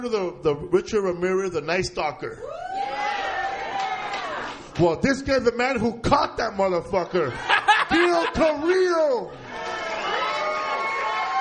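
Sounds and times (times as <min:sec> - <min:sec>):
speech: 0:00.0 - 0:02.7, 0:04.8 - 0:09.4
audience cheering and applause: 0:02.4 - 0:04.8, 0:09.3 - 0:11.3
laughter: 0:07.0 - 0:09.7.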